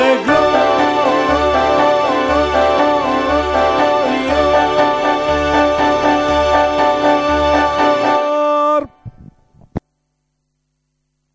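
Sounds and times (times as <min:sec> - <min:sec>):
contralto choir singing: 0:00.0 - 0:08.4.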